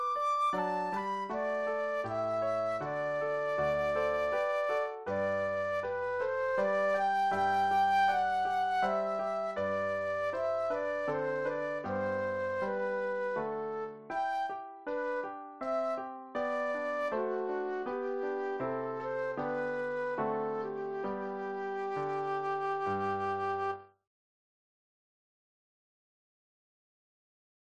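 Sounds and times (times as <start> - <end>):
classical minuet flute solo: 0.0 - 23.9.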